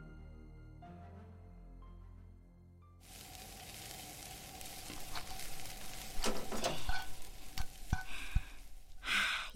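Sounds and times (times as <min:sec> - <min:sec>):
pasta sizzling while being stir-fried in pan: 0:03.0 - 0:09.4.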